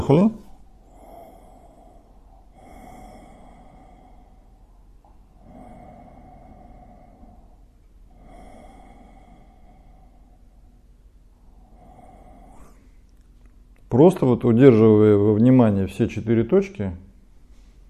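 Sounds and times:
speech: 0:00.1 - 0:00.4, 0:14.0 - 0:17.0
deep nasal breathing inhaling essential oils: 0:00.4 - 0:13.2.

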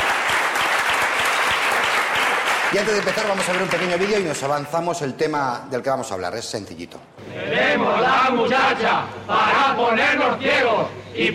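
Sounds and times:
audience applause in a Spanish comedy talk show studio: 0:00.0 - 0:04.5
speech: 0:02.7 - 0:11.3.

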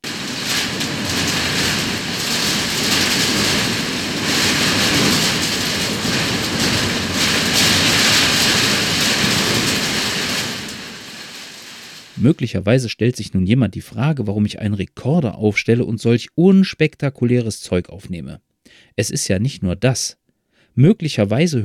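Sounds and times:
wind recorded indoors under the roof: 0:00.0 - 0:12.2
speech: 0:12.2 - 0:20.2, 0:20.8 - 0:21.6.

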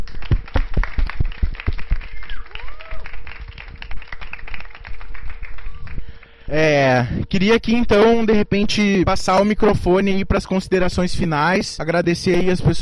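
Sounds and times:
applause: 0:00.0 - 0:06.5
speech: 0:06.5 - 0:12.8.

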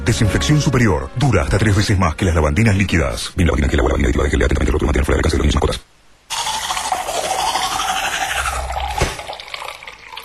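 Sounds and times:
speech: 0:00.0 - 0:05.9
toothbrush scrubbing teeth: 0:06.3 - 0:09.8.

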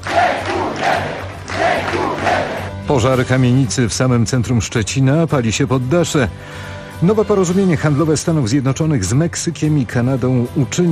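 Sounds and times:
hundreds of fans cheering to welcome volleyball champions at the airport: 0:00.0 - 0:02.8
speech: 0:02.9 - 0:10.8.

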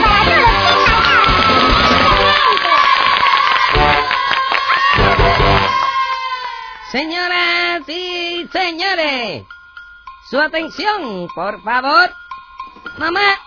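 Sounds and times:
group of children cheering and shouting: 0:00.0 - 0:06.9
speech: 0:07.0 - 0:09.6, 0:10.3 - 0:12.2, 0:12.9 - 0:13.4.

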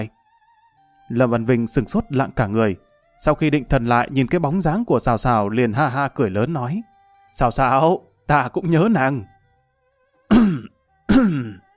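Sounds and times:
speech: 0:01.1 - 0:09.3, 0:10.3 - 0:11.6
man fake coughing: 0:10.3 - 0:11.7.

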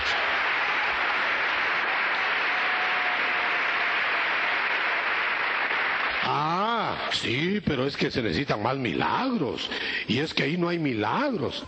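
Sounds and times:
church congregation applause during a Christian sermon: 0:00.0 - 0:07.3
speech: 0:07.1 - 0:11.6.

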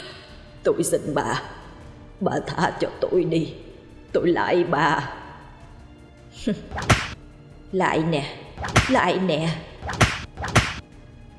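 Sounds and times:
speech: 0:00.6 - 0:01.6, 0:02.2 - 0:05.2, 0:06.4 - 0:07.1, 0:07.7 - 0:10.2
whip several metres long lashing: 0:06.7 - 0:07.2, 0:08.6 - 0:09.1, 0:09.8 - 0:10.8.

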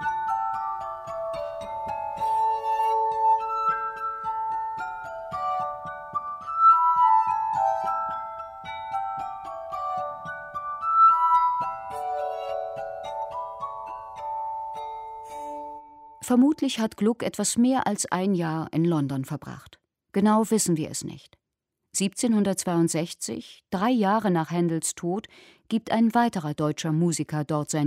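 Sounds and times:
glass harp of water-tuned glasses: 0:00.0 - 0:16.4
speech: 0:16.3 - 0:21.4, 0:22.0 - 0:27.8.

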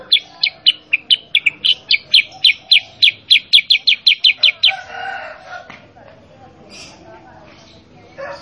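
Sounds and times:
sooty-headed bulbul chirps: 0:00.1 - 0:04.8.

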